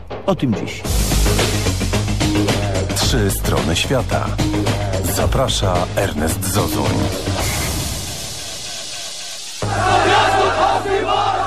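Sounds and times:
speech: 0.3s - 7.6s
laughter: 7.9s - 11.4s
crowd of protesters shouting and chanting in Tahrir Square demanding Mubarak go: 9.6s - 11.4s.

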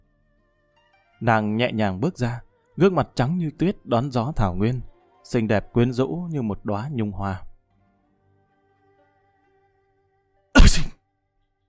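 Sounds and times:
speech: 1.2s - 7.5s, 10.6s - 10.9s
loud sneeze: 10.6s - 11.0s.

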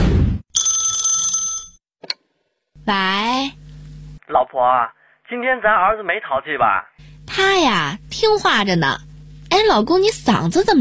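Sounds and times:
telephone ringing with an incoming call: 0.6s - 1.8s
speech: 2.9s - 3.6s, 4.3s - 10.7s.

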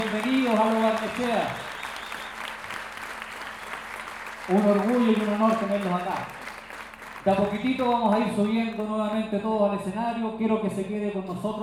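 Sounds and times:
audience applause at a payadores gathering in Lo Barnechea: 0.0s - 9.0s
speech: 0.5s - 1.7s, 4.5s - 6.4s, 7.2s - 11.6s.

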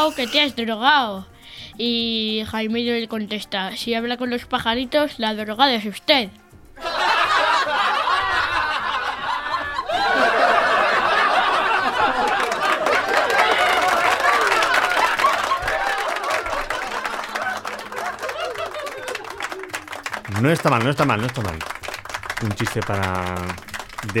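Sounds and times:
class of schoolchildren laughing and giggling: 0.0s - 0.6s, 6.8s - 20.0s
speech: 0.0s - 6.9s, 20.4s - 21.8s, 22.4s - 24.1s
schoolchildren clapping in a classroom: 10.4s - 24.1s.

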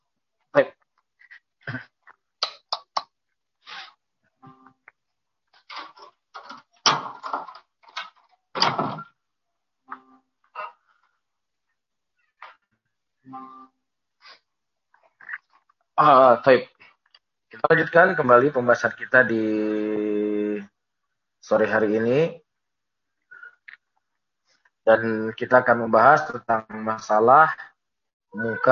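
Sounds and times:
door opening: 5.6s - 9.1s
speech: 16.0s - 16.7s, 17.6s - 20.0s, 21.5s - 22.4s, 24.9s - 27.6s, 28.3s - 28.7s.

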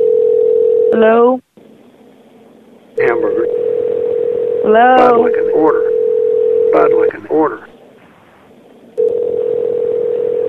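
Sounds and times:
telephone ringing tone on the line: 0.0s - 1.1s, 3.0s - 7.6s, 9.0s - 10.4s
speech: 1.0s - 1.5s, 4.7s - 5.9s, 6.9s - 7.8s.

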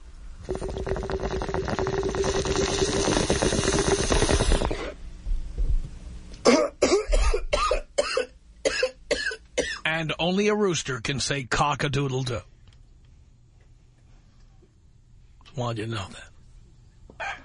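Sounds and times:
bong water bubbling: 0.4s - 5.0s
speech: 0.5s - 0.7s, 10.0s - 12.5s, 15.6s - 16.3s
harsh sputtering coughing: 6.4s - 9.9s.

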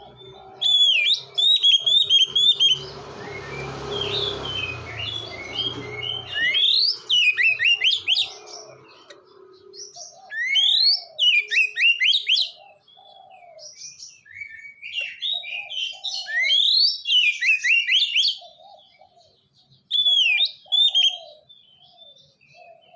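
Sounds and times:
quieter low warbling: 0.0s - 9.6s
Oriental magpie-robin singing: 0.0s - 22.9s.

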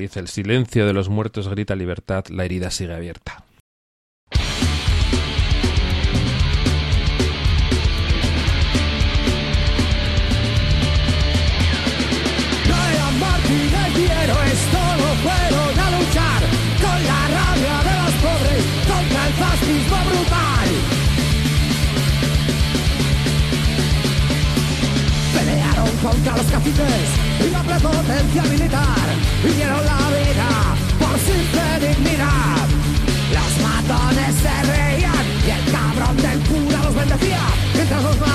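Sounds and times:
speech: 0.0s - 3.5s, 26.0s - 32.8s, 33.9s - 38.3s
punk rock song from 2005 with distorted guitars and drums: 4.3s - 38.3s
raw vocals: 12.6s - 38.3s.

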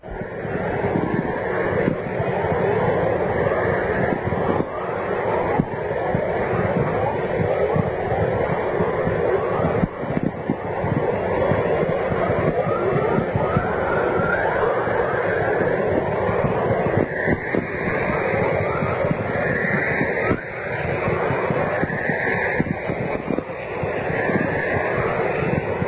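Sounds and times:
aurora borealis radio emissions chorus and whistlers in Manitoba: 0.1s - 25.8s.

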